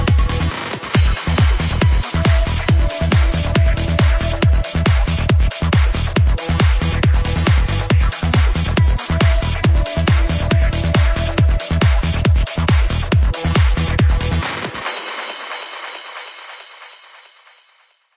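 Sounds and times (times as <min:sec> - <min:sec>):
progressive psytrance drum kits: 0:00.0 - 0:17.8.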